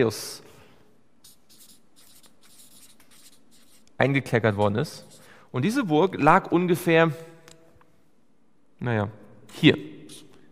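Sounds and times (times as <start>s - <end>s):
speech: 0.0s - 0.4s, 4.0s - 7.3s, 8.8s - 9.9s
handwriting strokes writing a word: 1.2s - 5.4s.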